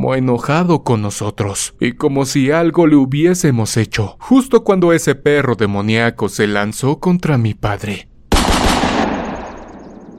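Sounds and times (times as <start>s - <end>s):
speech: 0.0s - 8.5s
gunshots: 8.3s - 10.1s.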